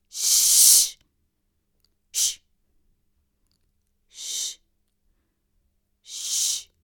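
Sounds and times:
person shushing: 0.1 - 1.0, 2.2 - 2.4, 4.1 - 4.6, 6.1 - 6.7.

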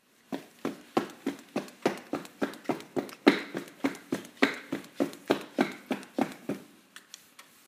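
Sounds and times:
running on a concrete floor: 0.2 - 6.8.

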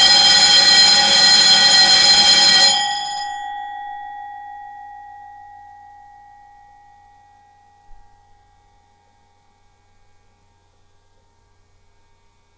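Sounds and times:
stereo bell: 0.0 - 4.1.

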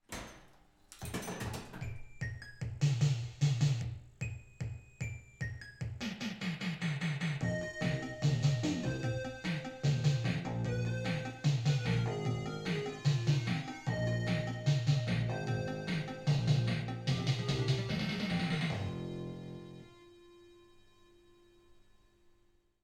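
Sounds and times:
arcade pinball machine theme music: 0.1 - 3.2, 6.0 - 20.0.

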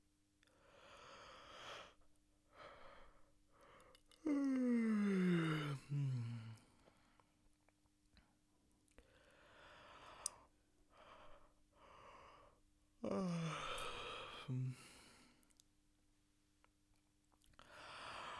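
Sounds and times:
person yawning: 4.2 - 6.6, 13.0 - 15.0.

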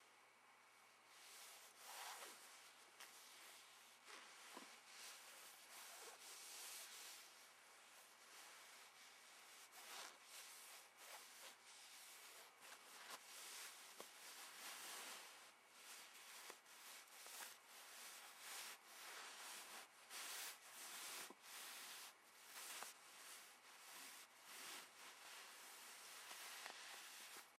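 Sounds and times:
fabric rustling: 1.1 - 27.5.

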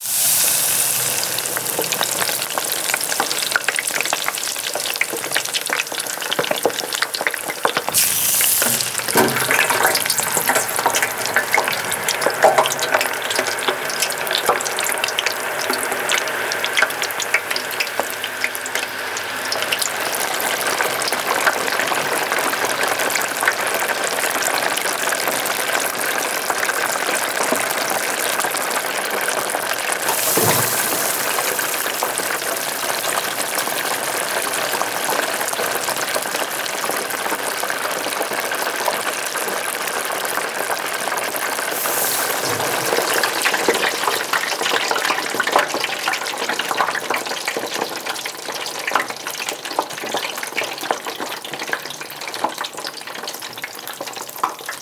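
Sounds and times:
deep fryer sizzling: 0.0 - 54.7.

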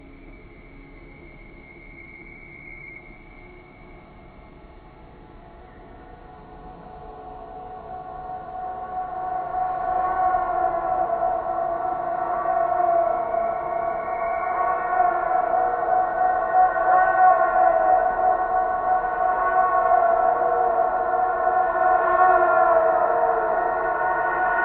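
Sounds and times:
high ambient horror music: 0.1 - 24.6.

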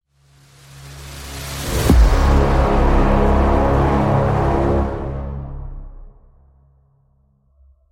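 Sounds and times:
cinematic intro music: 0.1 - 7.9.

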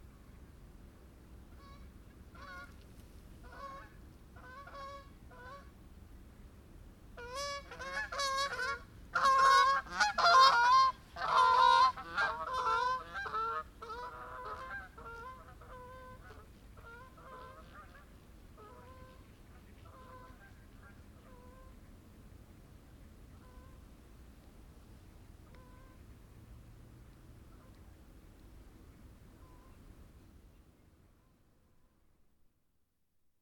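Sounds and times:
Canada geese: 1.5 - 2.8, 3.4 - 5.7, 7.2 - 22.0, 23.3 - 23.8, 25.4 - 26.0, 27.5 - 28.0, 29.4 - 29.9.

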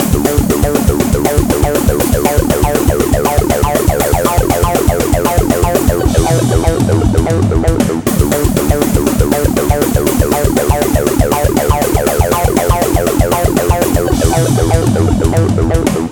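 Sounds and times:
trance and metal music loop: 0.0 - 16.1.

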